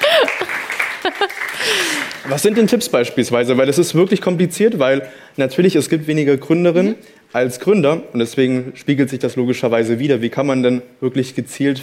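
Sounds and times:
crowd clapping: 0:00.0 - 0:02.8
speech: 0:02.3 - 0:11.8.

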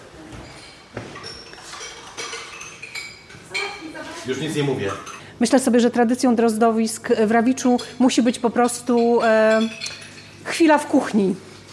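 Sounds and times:
steady hum: 0:00.0 - 0:11.7
dishes and cutlery clinking in kitchen: 0:00.3 - 0:05.3, 0:07.6 - 0:10.6
speech: 0:04.2 - 0:10.0, 0:10.6 - 0:11.5.

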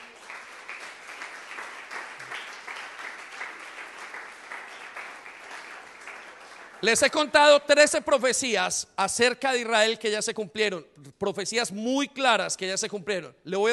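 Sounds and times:
audience applauding: 0:00.0 - 0:07.3
speech: 0:06.8 - 0:13.7.

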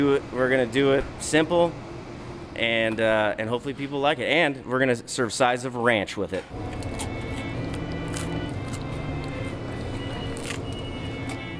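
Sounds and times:
speech: 0:00.0 - 0:01.9, 0:02.6 - 0:06.9
crunch of crispy pizza crust: 0:06.7 - 0:10.8.

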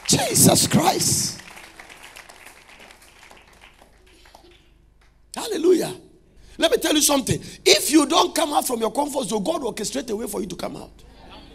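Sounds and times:
faithful ones clapping: 0:00.0 - 0:05.2
speech: 0:00.2 - 0:01.4, 0:07.0 - 0:11.2.

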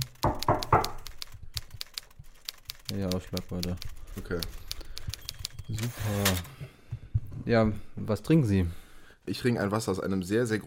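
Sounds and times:
knocking: 0:00.2 - 0:01.0
speech: 0:03.0 - 0:04.7, 0:05.7 - 0:06.7, 0:07.4 - 0:10.6.

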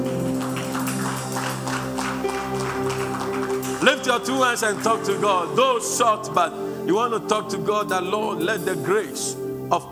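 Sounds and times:
audience clapping: 0:00.0 - 0:06.6
speech: 0:03.8 - 0:09.9.

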